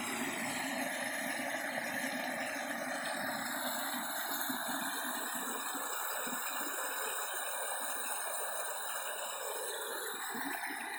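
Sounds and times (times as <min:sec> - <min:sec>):
waterfall: 0:00.0 - 0:10.9.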